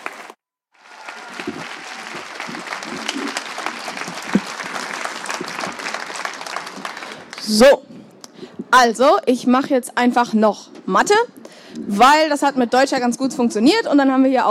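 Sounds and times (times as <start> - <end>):
crowd applause: 0.0 - 7.6
speech: 7.5 - 7.8, 8.7 - 14.5.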